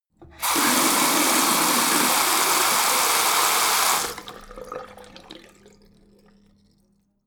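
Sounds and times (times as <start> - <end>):
bathroom tap water flowing very hard: 0.2 - 5.6.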